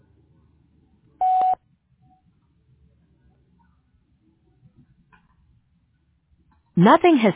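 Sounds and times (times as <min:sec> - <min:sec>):
voicemail beep tone: 0:01.2 - 0:01.6.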